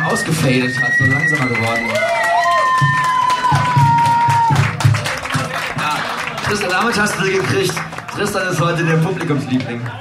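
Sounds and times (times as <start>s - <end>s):
audience applause and cheering: 0.0s - 9.9s
speech: 0.1s - 2.2s, 2.8s - 3.6s, 6.5s - 9.9s.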